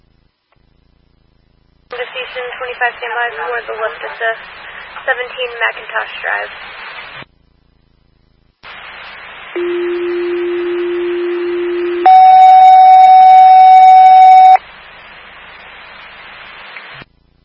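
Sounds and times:
speech: 2.3s - 6.8s
fire station dispatch alert tones: 9.6s - 14.6s.

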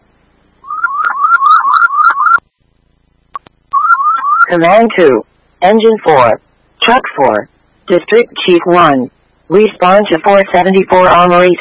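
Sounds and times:
fire dispatch alert tone: 0.6s - 2.4s, 3.8s - 7.0s
speech: 4.5s - 11.6s.

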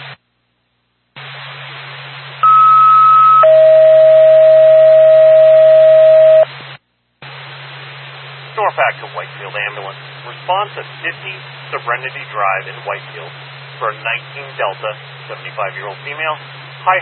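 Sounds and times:
dispatch alert tone: 2.4s - 6.5s
speech: 10.5s - 16.9s.

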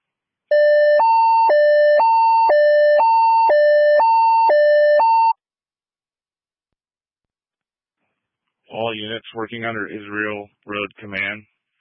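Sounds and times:
emergency alert tones: 0.5s - 5.4s
speech: 9.0s - 11.5s.

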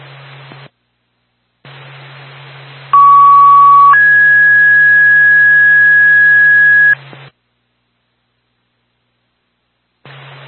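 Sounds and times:
radio static: 3.0s - 7.0s
two-tone dispatch paging alert tone: 3.0s - 7.0s.

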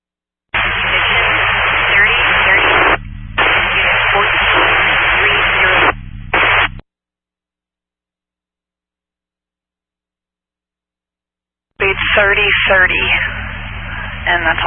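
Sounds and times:
radio static: 0.6s - 6.8s, 11.8s - 14.6s.

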